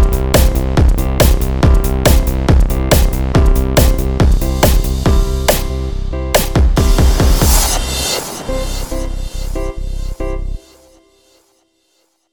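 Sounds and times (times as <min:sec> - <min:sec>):
electronic dance music fusing Latin jazz and bossa nova: 0:00.0 - 0:10.6.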